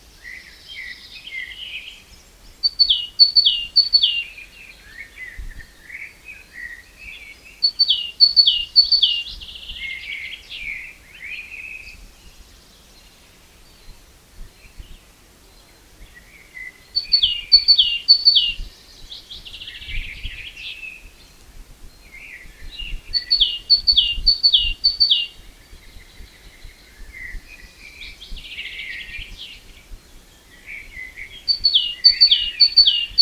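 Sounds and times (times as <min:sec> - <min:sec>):
great tit singing: 0:02.5 - 0:05.4, 0:06.6 - 0:12.3, 0:15.6 - 0:33.2.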